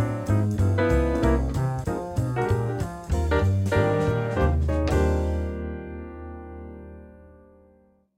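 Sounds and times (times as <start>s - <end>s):
horns playing up-tempo swing jazz: 0.0s - 5.7s.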